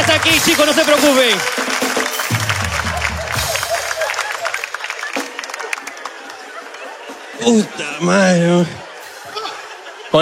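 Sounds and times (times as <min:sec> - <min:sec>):
crowd applauding: 0:00.0 - 0:07.7
crowd cheering: 0:00.0 - 0:10.1
speech: 0:00.2 - 0:01.7, 0:07.4 - 0:08.8
laughter: 0:02.2 - 0:10.1.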